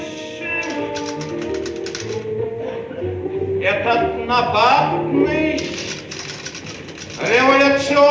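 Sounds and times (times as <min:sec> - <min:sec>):
typewriter typing: 0:00.6 - 0:02.3, 0:05.3 - 0:07.9
speech: 0:03.9 - 0:05.3.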